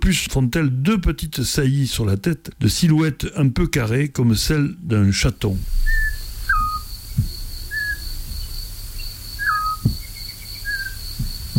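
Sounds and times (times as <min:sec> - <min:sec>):
speech: 0:00.0 - 0:06.1
low thumps: 0:05.5 - 0:11.5
high-pitched whine: 0:05.6 - 0:10.0
male and female birds calling back and forth: 0:05.6 - 0:11.5.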